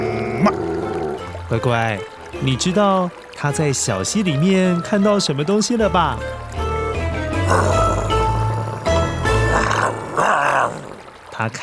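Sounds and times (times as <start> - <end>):
dog growling unhappily: 0.0 - 1.3, 7.4 - 11.1
speech: 0.4 - 0.7, 1.5 - 6.5, 7.5 - 8.0, 11.4 - 11.6.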